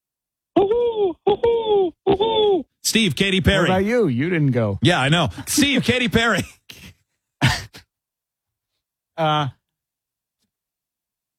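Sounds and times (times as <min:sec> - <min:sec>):
voice imitating a hooting owl: 0:00.6 - 0:02.7
speech: 0:01.0 - 0:07.6, 0:09.2 - 0:09.6.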